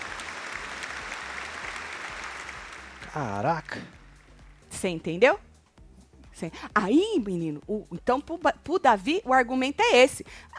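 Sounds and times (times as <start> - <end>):
applause: 0.0 - 4.6
speech: 3.1 - 4.0, 4.8 - 5.5, 6.4 - 10.5.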